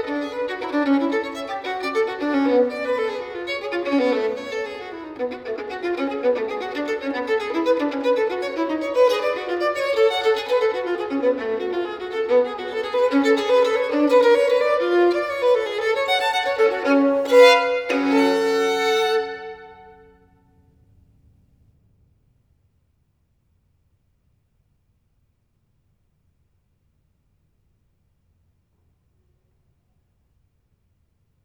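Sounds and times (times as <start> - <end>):
solo violin sonata in G minor: 0.0 - 20.2.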